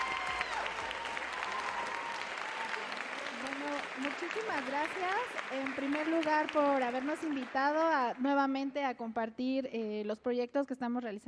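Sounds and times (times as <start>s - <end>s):
audience clapping: 0.0s - 8.8s
speech: 4.0s - 11.2s.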